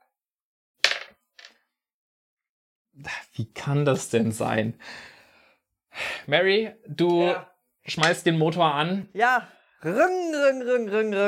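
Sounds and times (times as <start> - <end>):
dice rolling: 0.8 - 1.6
speech: 3.0 - 5.1, 6.0 - 11.2.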